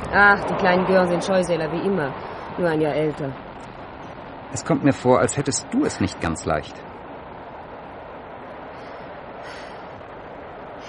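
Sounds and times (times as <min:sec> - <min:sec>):
train rolling along the tracks: 0:00.0 - 0:10.8
speech: 0:00.1 - 0:03.5, 0:04.5 - 0:06.9
faint hiss: 0:02.1 - 0:10.8.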